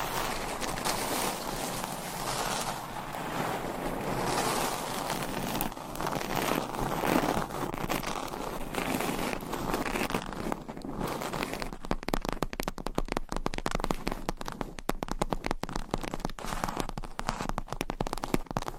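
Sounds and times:
scratching on a surface: 0.0 - 11.6
sharp taps and clicks on a surface: 11.7 - 18.7.

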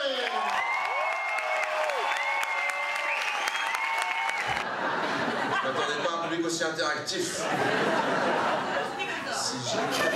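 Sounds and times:
audience applause: 0.1 - 5.2
laughter: 4.4 - 6.6, 7.2 - 10.1.

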